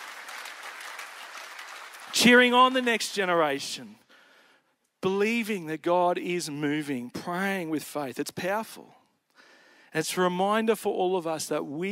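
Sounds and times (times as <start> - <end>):
audience applause: 0.0 - 2.9
speech: 2.2 - 4.0, 5.0 - 9.0, 9.9 - 11.9.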